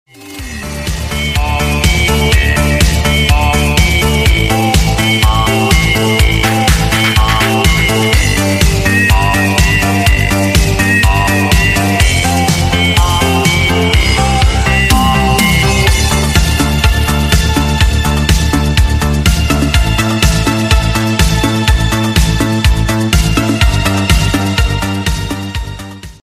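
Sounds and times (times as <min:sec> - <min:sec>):
electro music: 0:00.1 - 0:25.8.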